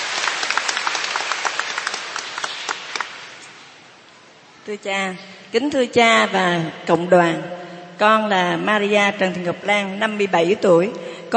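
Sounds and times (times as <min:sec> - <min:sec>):
crowd applauding: 0:00.0 - 0:03.4
speech: 0:04.7 - 0:11.3.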